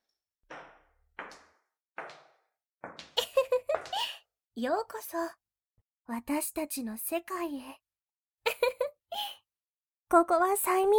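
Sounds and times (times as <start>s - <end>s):
dull wooden thuds of door: 0.5s - 4.1s
speech: 4.6s - 5.4s, 6.1s - 7.8s, 10.1s - 10.9s.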